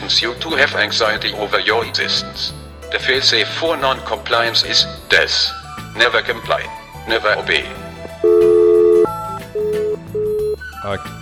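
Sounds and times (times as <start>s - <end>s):
speech: 0.1s - 7.8s, 10.8s - 11.1s
telephone tone after a caller drops off the line: 8.2s - 10.6s.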